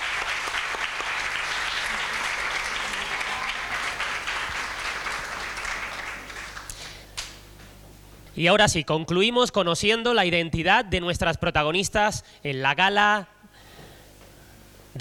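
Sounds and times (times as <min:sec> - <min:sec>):
audience applause: 0:00.0 - 0:07.1
speech: 0:08.4 - 0:13.3.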